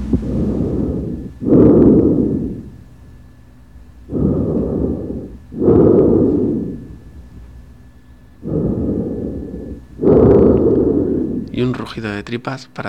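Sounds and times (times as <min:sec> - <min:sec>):
tracheal breath sounds through a stethoscope: 0:00.0 - 0:02.8, 0:04.0 - 0:07.2, 0:07.8 - 0:11.6
speech: 0:11.6 - 0:12.8.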